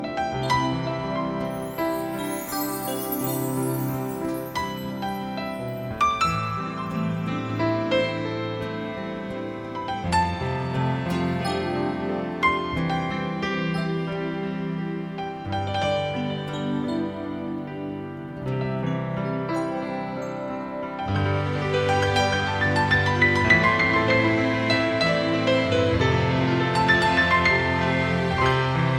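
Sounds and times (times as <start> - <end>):
music: 0.0 - 28.9.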